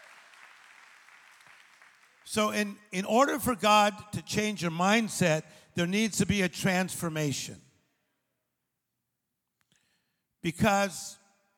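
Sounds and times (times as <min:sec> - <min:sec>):
audience clapping loudly: 0:00.0 - 0:02.4
speech: 0:02.3 - 0:07.6, 0:10.4 - 0:11.2.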